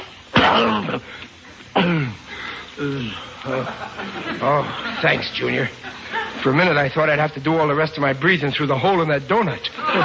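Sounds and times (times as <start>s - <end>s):
man choking: 0.4s - 3.7s
speech: 0.6s - 2.2s, 2.8s - 10.0s
laughter: 3.0s - 7.2s, 9.6s - 10.0s.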